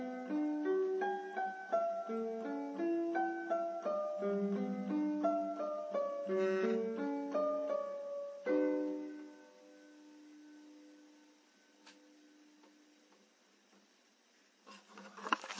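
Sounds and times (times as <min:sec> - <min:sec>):
classical piano piece: 0:00.0 - 0:10.6.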